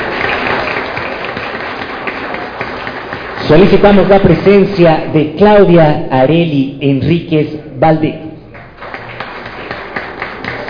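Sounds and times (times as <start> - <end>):
crowd applauding: 0.0 - 4.6, 8.6 - 10.6
speech: 3.5 - 8.2.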